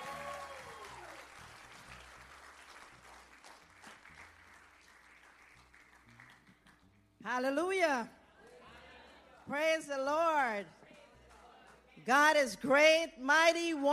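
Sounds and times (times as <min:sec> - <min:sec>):
audience applause: 0:00.0 - 0:06.8
speech: 0:07.3 - 0:08.2, 0:09.5 - 0:10.8, 0:12.0 - 0:13.9.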